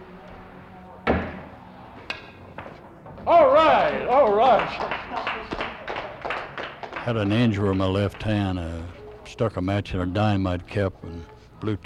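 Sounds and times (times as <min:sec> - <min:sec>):
pool cue striking a ball into a pocket in a one-handed shot: 0:01.0 - 0:02.8
speech: 0:03.3 - 0:05.3, 0:07.1 - 0:11.8.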